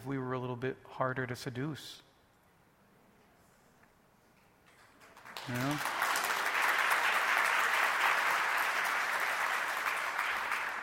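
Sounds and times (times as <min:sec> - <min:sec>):
speech: 0:00.0 - 0:02.1, 0:05.5 - 0:06.0
audience clapping: 0:04.8 - 0:10.8.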